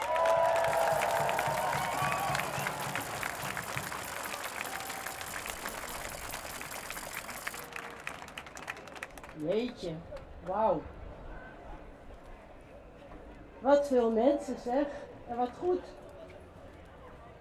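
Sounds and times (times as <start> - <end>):
crowd applause and cheering at a demonstration against racism and fascism: 0.0 - 9.4
speech: 9.4 - 11.0, 13.6 - 16.0.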